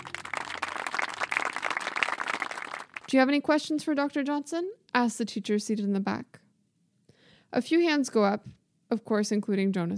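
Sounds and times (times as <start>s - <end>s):
class applauding after a lecture: 0.0s - 3.1s
speech: 3.1s - 6.4s, 7.5s - 9.9s.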